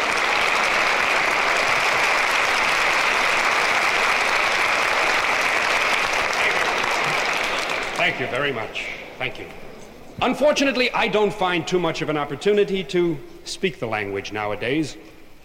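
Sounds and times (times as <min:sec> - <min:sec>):
audience applause welcoming a performer onstage: 0:00.0 - 0:09.6
speech: 0:08.2 - 0:15.1.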